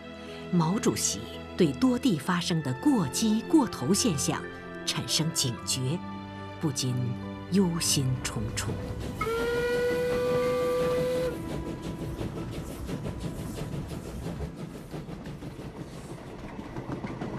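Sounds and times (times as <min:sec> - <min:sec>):
speech: 0:00.5 - 0:09.5
rumble and clatter of a moving train bound for Hangzhou: 0:00.6 - 0:06.0, 0:06.6 - 0:17.3
long whistle of a train bound for Hangzhou: 0:09.2 - 0:12.3.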